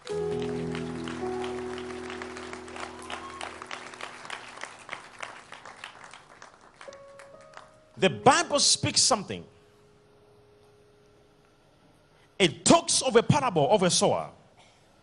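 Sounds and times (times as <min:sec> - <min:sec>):
sustained low keyboard chords: 0:00.0 - 0:05.8, 0:06.8 - 0:11.3
audience clapping hands: 0:00.0 - 0:08.0
speech: 0:08.0 - 0:09.6, 0:12.4 - 0:14.4.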